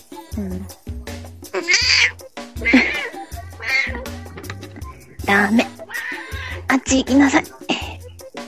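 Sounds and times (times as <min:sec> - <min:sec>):
speech: 0:00.4 - 0:00.8, 0:05.3 - 0:05.7, 0:06.8 - 0:07.6
cat in heat yowling: 0:01.5 - 0:04.2, 0:05.3 - 0:06.7.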